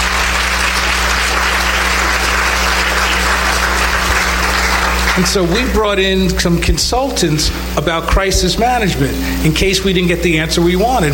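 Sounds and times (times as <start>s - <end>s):
audience applause: 0.0s - 6.0s
speech: 5.2s - 11.1s.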